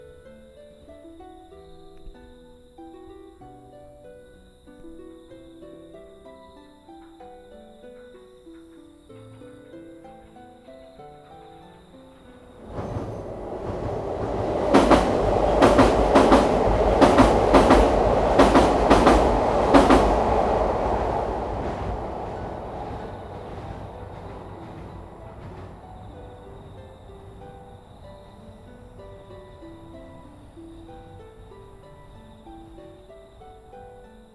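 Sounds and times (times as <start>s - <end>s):
train passing on an elevated track: 11.2s - 34.3s.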